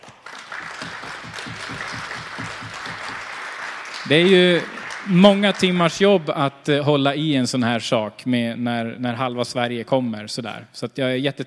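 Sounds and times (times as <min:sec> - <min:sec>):
crowd applause: 0:00.0 - 0:06.2
speech: 0:04.1 - 0:11.4.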